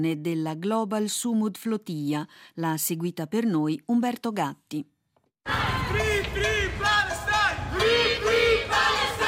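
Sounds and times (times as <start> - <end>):
speech: 0.0 - 7.0
crowd at a street demonstration in Lugano: 5.4 - 9.2.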